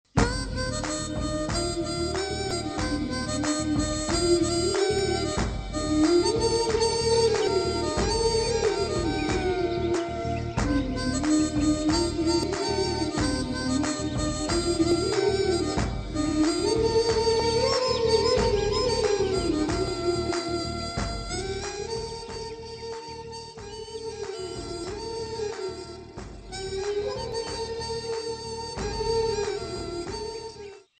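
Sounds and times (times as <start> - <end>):
instrumental music: 0.0 - 30.9.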